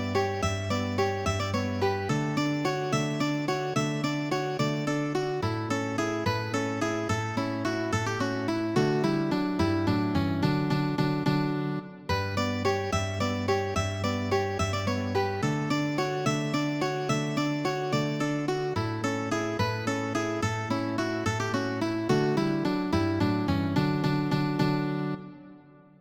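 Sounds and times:
mandolin in a duet: 0.0 - 25.4
guitar in a duet: 0.0 - 25.9.

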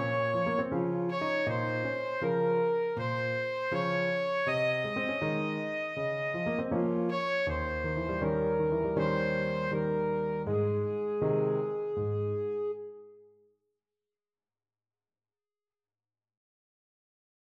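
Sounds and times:
saxophone: 0.0 - 13.1.

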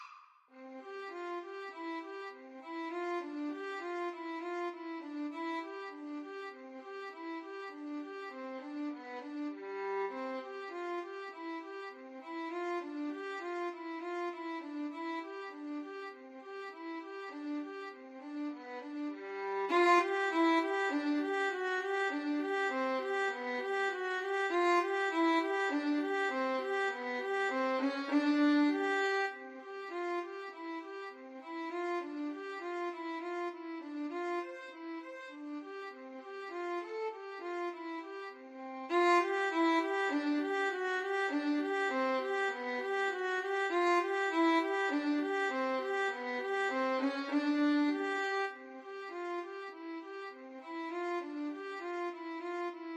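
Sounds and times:
violin duet melody: 0.6 - 52.9.

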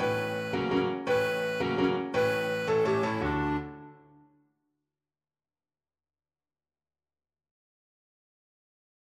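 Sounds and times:
clarinet playing a waltz: 0.0 - 4.3.

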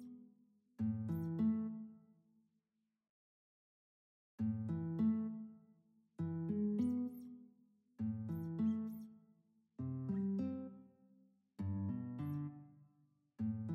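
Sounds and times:
classical guitar duet: 0.8 - 1.8, 4.4 - 5.5, 6.2 - 7.4, 8.0 - 9.0, 9.8 - 10.8, 11.6 - 12.7, 13.4 - 13.7.

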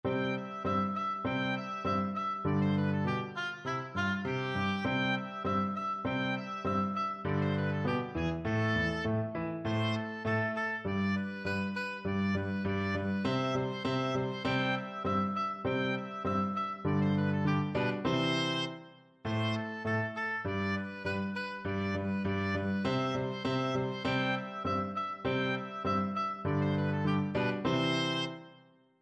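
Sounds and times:
oboe playing a classical march: 0.1 - 28.6.

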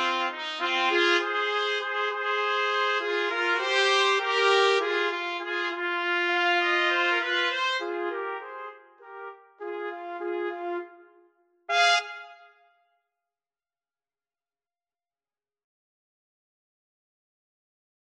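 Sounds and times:
trumpet trio playing: 0.0 - 11.0, 11.7 - 12.6.

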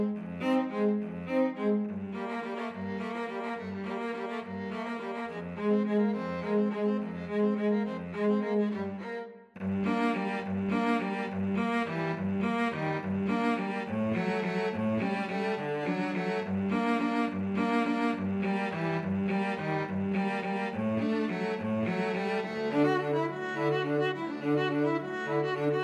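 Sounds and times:
cello: 0.0 - 25.8
two violins: 0.0 - 25.8.

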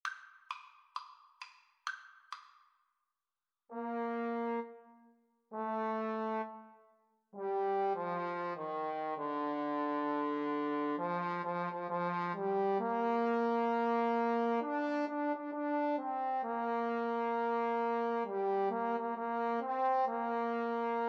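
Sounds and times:
trombone duet: 3.7 - 4.7, 5.5 - 6.6, 7.4 - 21.0.

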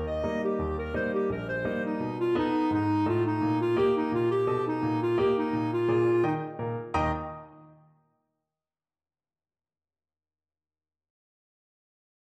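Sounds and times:
clarinet playing a ragtime piece: 0.0 - 7.7.

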